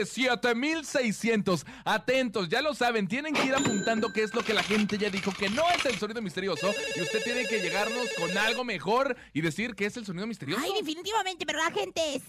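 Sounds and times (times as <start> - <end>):
speech: 0.0 - 12.2
telephone ringing: 3.6 - 5.9, 6.5 - 8.8.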